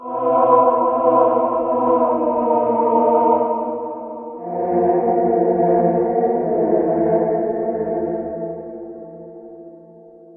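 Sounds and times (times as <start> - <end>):
choir singing: 0.0 - 8.8.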